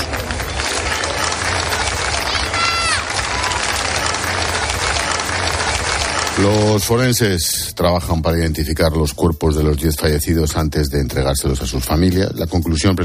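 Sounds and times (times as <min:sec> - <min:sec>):
residents applauding: 0:00.0 - 0:07.1
speech: 0:06.4 - 0:13.0.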